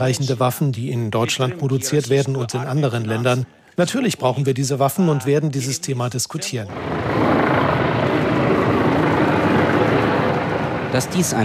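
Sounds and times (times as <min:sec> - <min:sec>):
speech: 0:00.0 - 0:08.2, 0:10.9 - 0:11.4
helicopters circling overhead: 0:06.7 - 0:11.4.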